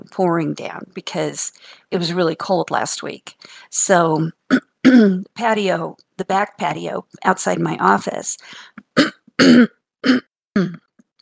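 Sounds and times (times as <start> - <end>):
speech: 0.0 - 10.8
person clearing their throat and coughing: 8.9 - 10.9.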